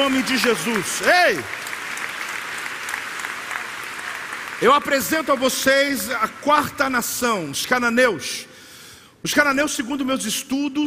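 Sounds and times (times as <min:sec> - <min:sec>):
speech: 0:00.0 - 0:01.7, 0:04.6 - 0:08.5, 0:09.2 - 0:10.8
audience applauding: 0:00.0 - 0:06.7.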